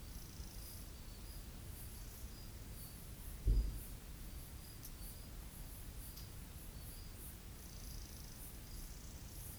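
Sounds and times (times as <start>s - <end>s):
cicadas and crickets chirping on a summer night in the bush: 0.1s - 3.0s, 4.5s - 9.5s
soft thump: 3.5s - 3.8s.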